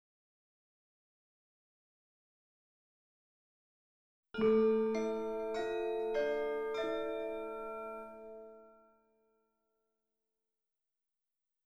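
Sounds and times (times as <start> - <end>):
chimes: 4.4 - 9.0.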